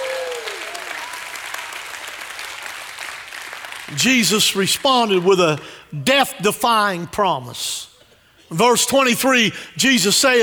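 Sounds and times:
audience hand clapping: 0:00.0 - 0:05.8
speech: 0:03.9 - 0:07.9, 0:08.5 - 0:10.4.

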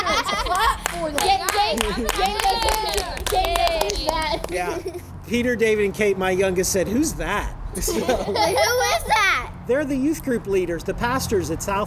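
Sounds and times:
people clapping: 0:00.0 - 0:05.0
laughter: 0:00.0 - 0:05.1, 0:07.8 - 0:09.5
speech: 0:01.0 - 0:11.8.

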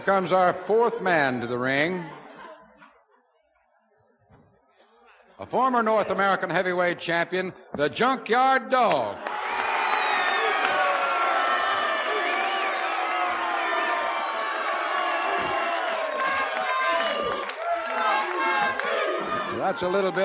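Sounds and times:
speech: 0:00.0 - 0:02.2, 0:05.4 - 0:09.4, 0:19.7 - 0:20.2
large indoor arena crowd cheering and applauding: 0:09.2 - 0:20.2.

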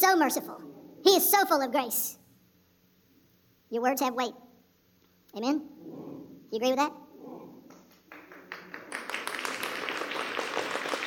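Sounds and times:
speech: 0:00.0 - 0:02.2, 0:03.7 - 0:04.4, 0:05.3 - 0:07.0
slow clapping from audience: 0:07.6 - 0:11.0.

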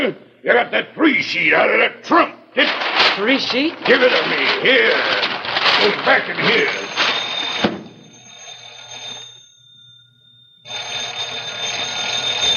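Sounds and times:
speech: 0:00.0 - 0:06.8
telephone ringing: 0:03.2 - 0:12.5.

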